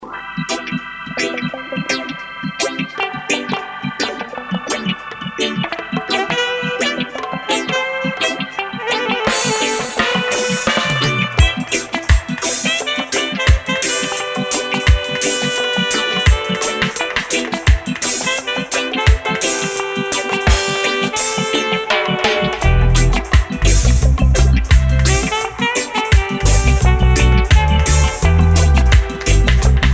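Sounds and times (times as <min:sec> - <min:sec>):
saxophone: 0:00.1 - 0:29.9.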